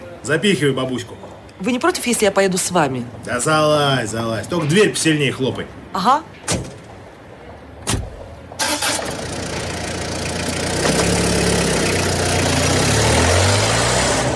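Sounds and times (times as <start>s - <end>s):
speech: 0.2s - 6.7s
old van engine starting: 7.9s - 14.3s.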